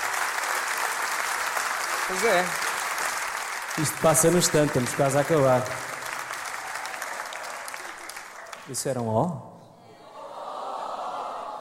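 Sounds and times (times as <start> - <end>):
audience applause: 0.0 - 9.0
speech: 2.1 - 2.6, 3.8 - 5.9, 8.7 - 9.6.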